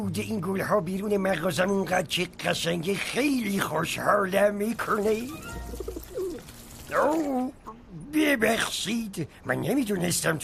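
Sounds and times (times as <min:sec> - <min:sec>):
speech: 0:00.0 - 0:05.8, 0:06.9 - 0:10.4
pigeon cooing: 0:05.7 - 0:06.4.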